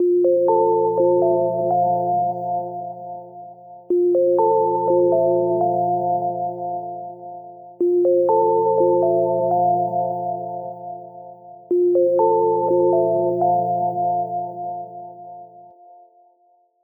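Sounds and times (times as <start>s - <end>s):
gentle bells: 0.0s - 16.0s.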